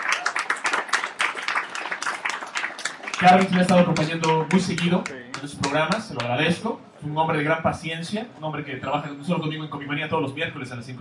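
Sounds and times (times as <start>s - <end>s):
applause: 0.0s - 6.3s
speech: 3.2s - 10.9s.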